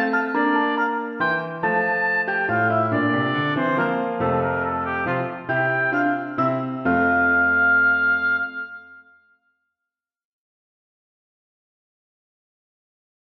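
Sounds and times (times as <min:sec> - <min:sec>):
oboe and piano minuet: 0:00.0 - 0:09.2.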